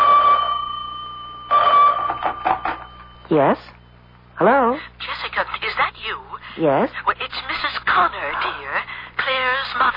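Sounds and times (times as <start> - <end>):
old-fashioned telephone bell ringing: 0.0 - 3.3
speech: 3.3 - 3.8, 4.4 - 5.2, 6.1 - 7.2, 8.0 - 9.9.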